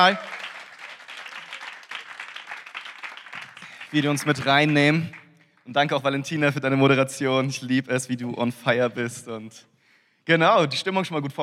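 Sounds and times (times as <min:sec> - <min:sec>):
speech: 0:00.0 - 0:00.4, 0:03.9 - 0:11.4
audience applause for the band: 0:00.0 - 0:05.2.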